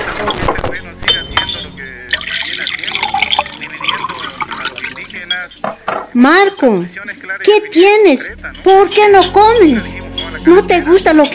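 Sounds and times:
glass clinking: 1.1 - 6.1, 10.1 - 11.3
water poured into a glass: 2.0 - 5.6
speech: 6.2 - 11.3.

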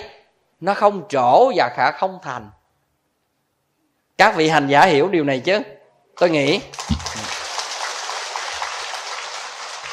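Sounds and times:
speech: 0.6 - 2.6, 4.2 - 7.0
audience applause at a question-and-answer teaching session: 6.7 - 9.9.

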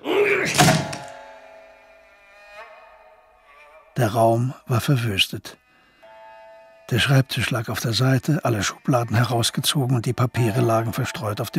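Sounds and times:
bolted workroom door groaning as it is forced: 0.0 - 1.3
long metallic creak of door swinging: 0.4 - 1.4
heavy thud of door forced open: 0.5 - 1.2
speech: 4.0 - 5.6, 6.9 - 11.5.

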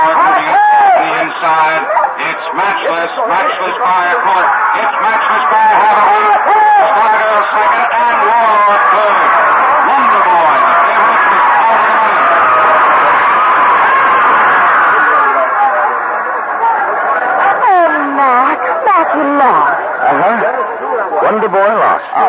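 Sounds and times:
laughter: 0.0 - 18.0
crowd at a horse race roaring: 0.0 - 22.2
speech: 2.8 - 7.9.

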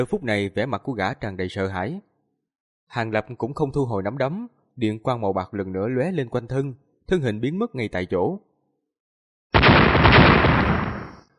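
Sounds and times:
speech: 0.0 - 2.1, 2.9 - 8.5
several loud explosions in the distance: 9.6 - 11.3.

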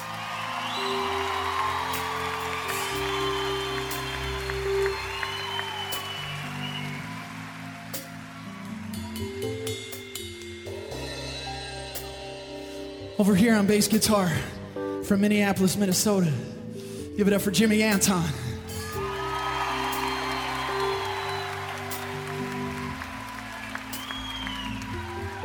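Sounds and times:
audience applauding for musicians on stage: 0.0 - 9.6, 18.8 - 25.4
speech: 13.2 - 16.6, 17.2 - 18.4.

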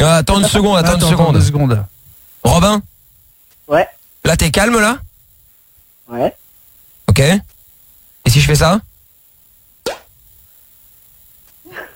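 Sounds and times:
speech: 0.1 - 2.9, 3.7 - 5.1, 6.1 - 6.4, 7.2 - 7.5, 8.2 - 8.9
small champagne bottle cork popping: 9.8 - 10.1.

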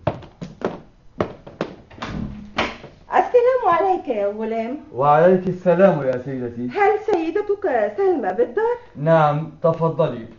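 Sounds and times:
door being opened in a radio drama: 1.8 - 2.9
speech: 3.7 - 10.3.

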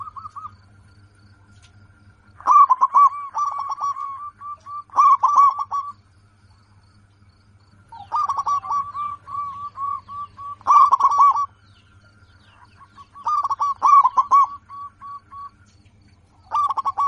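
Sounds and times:
zebra dove song: 0.0 - 0.7, 2.3 - 6.0, 7.7 - 15.7, 16.4 - 17.0.

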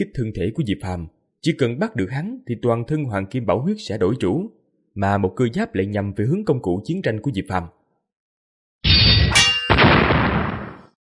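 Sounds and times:
speech: 0.0 - 7.8
golden bell clanging: 9.0 - 9.8
heavy crashing strike: 9.2 - 10.9.

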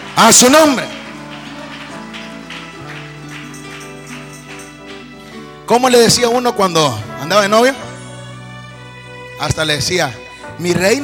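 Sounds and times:
crowd audience applause: 0.0 - 5.6
speech: 0.2 - 0.9, 5.7 - 7.8, 9.4 - 11.0.

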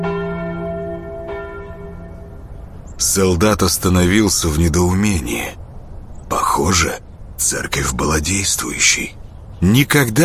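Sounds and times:
three church bells ringing in the belfry of a wooden church: 0.0 - 3.2
speech: 3.0 - 5.6, 6.6 - 10.2.

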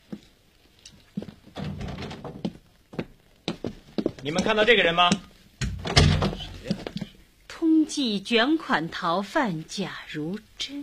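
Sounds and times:
door rattling and scraping as it moves: 1.6 - 2.5, 5.6 - 7.1
sharp wooden thumps of a door being opened: 4.0 - 7.2
speech: 4.2 - 6.0, 8.0 - 10.8.

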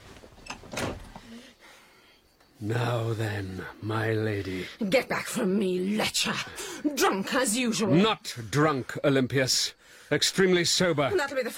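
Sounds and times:
door being shut: 0.4 - 1.3
speech: 2.6 - 11.5.

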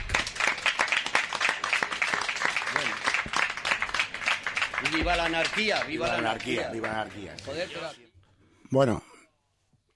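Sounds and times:
small crowd applause: 0.0 - 7.9
speech: 5.0 - 8.0, 8.7 - 9.0.

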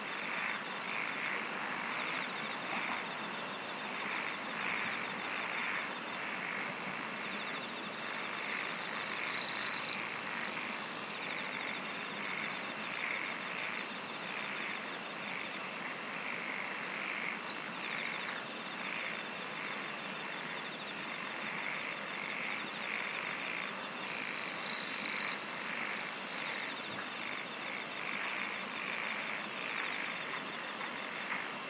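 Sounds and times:
insects chorusing: 0.0 - 31.6.

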